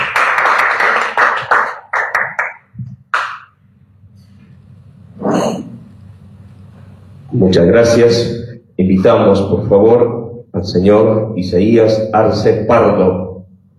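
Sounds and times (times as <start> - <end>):
audience applause: 0.0 - 3.4
speech: 7.5 - 13.3.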